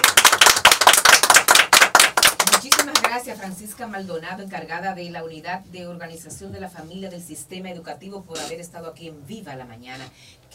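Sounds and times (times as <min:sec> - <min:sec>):
crowd applauding: 0:00.0 - 0:03.1
speech: 0:03.2 - 0:10.5.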